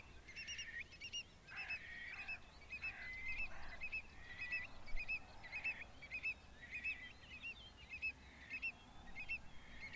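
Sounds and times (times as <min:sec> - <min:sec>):
Burhinus oedicnemus calling: 0:00.0 - 0:09.9.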